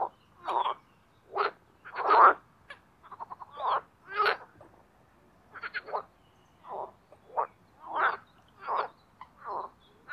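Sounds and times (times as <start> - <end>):
marsh frogs croaking: 0.0 - 4.5, 6.7 - 9.8.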